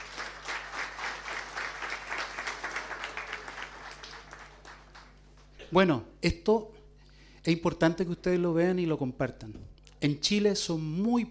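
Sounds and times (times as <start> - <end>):
audience applause: 0.0 - 5.5
speech: 5.7 - 6.8, 7.4 - 11.2.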